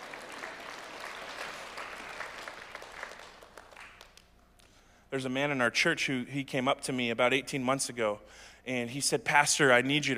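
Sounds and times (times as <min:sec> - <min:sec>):
audience clapping: 0:00.0 - 0:04.4
speech: 0:05.1 - 0:10.1.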